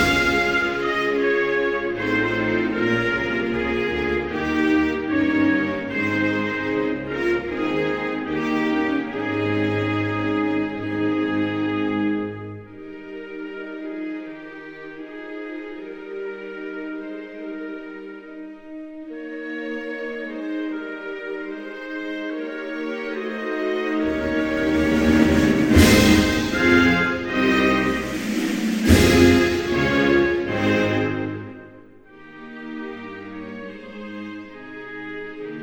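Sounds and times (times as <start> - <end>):
national anthem: 0.0 - 12.9, 20.0 - 34.7.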